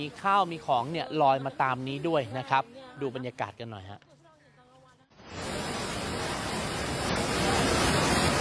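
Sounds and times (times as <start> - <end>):
speech: 0.0 - 4.1
flash flood water rushing: 5.2 - 8.3.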